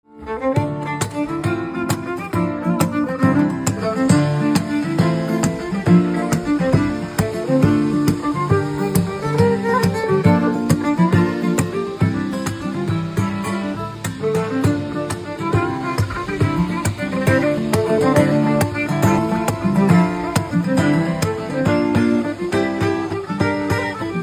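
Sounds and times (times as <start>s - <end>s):
violin instrumental ringtone: 0.2s - 24.2s.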